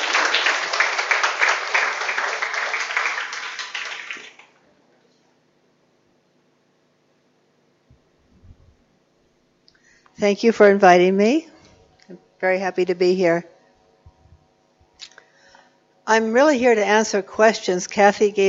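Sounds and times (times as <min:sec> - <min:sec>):
audience clapping to welcome a Zen master: 0:00.0 - 0:04.6
speech: 0:10.2 - 0:11.5, 0:12.1 - 0:13.5, 0:16.1 - 0:18.4.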